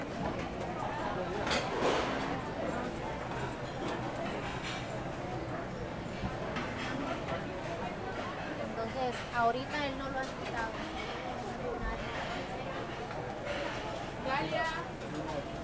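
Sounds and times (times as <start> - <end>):
food market ambience: 0.1 - 5.5, 6.2 - 15.6.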